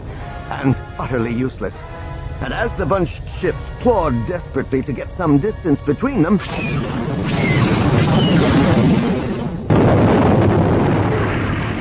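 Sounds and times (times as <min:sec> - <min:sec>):
speech: 0:00.5 - 0:07.5
torpedo explosion blast: 0:06.4 - 0:11.7.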